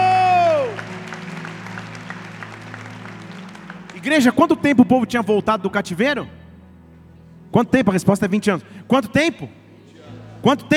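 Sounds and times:
audience applause: 0.0 - 4.7
speech: 4.0 - 6.4, 7.5 - 9.6, 10.4 - 10.7.

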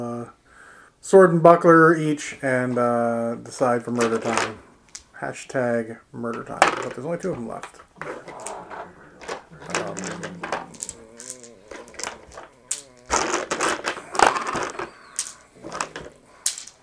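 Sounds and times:
speech: 1.0 - 8.2
handfuls of plastic dice rattling across a surface: 3.9 - 5.1, 6.3 - 16.8.

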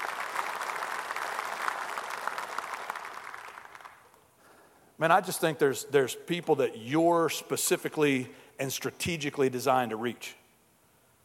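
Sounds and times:
audience applause: 0.0 - 4.2
speech: 5.0 - 10.4.

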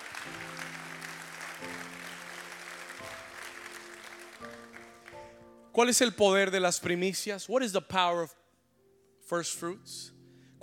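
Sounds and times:
audience applauding: 0.0 - 5.4
speech: 5.8 - 8.4, 9.3 - 10.6.

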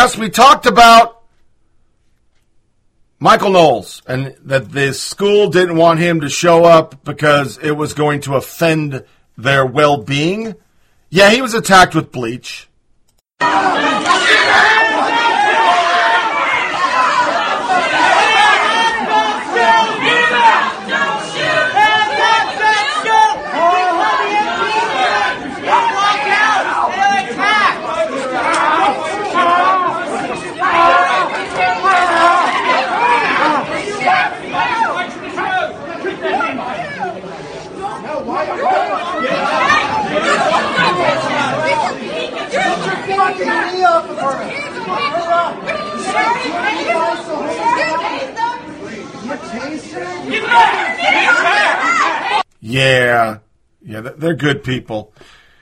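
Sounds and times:
speech: 0.0 - 1.2, 3.2 - 12.7, 13.4 - 14.6, 52.6 - 55.4
crowd of protesters shouting: 13.4 - 52.5.

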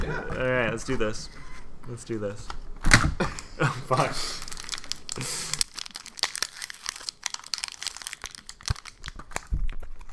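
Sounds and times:
speech: 0.1 - 4.4, 5.2 - 5.5
classic cherry scented plastic package crinkling as pulled open: 3.9 - 10.1.

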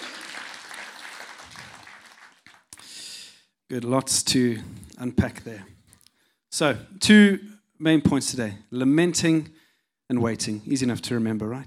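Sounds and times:
round of applause: 0.0 - 2.9
speech: 3.7 - 5.8, 6.6 - 11.6.

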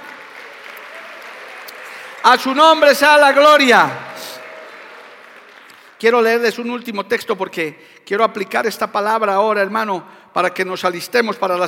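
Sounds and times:
audience applauding: 0.0 - 6.5
speech: 2.2 - 4.1, 6.0 - 11.6.

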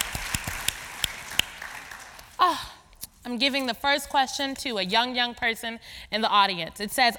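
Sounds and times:
audience applause: 0.0 - 2.2
speech: 2.4 - 2.7, 3.3 - 7.1.

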